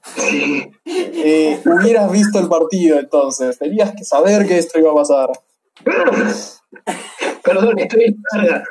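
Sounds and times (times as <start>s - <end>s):
person sneezing: 0.0s - 1.4s, 5.9s - 7.6s
speech: 0.2s - 8.6s.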